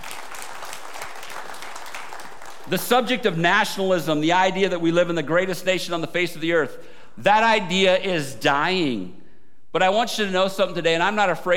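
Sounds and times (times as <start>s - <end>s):
audience applause: 0.0s - 2.8s
speech: 2.7s - 11.5s.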